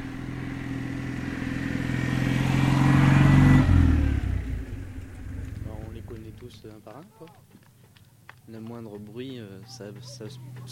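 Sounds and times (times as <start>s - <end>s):
Citroën 2CV car passing by: 0.0s - 6.7s
speech: 8.5s - 10.7s.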